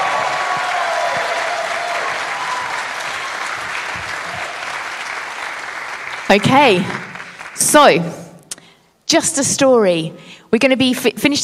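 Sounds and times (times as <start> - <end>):
audience cheering: 0.0 - 6.3
audience applauding: 0.0 - 7.8
speech: 6.3 - 7.0, 7.6 - 8.2, 9.1 - 11.4.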